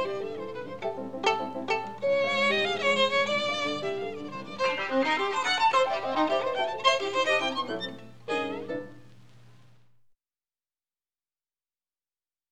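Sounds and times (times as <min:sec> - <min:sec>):
rumba music: 0:00.0 - 0:09.1.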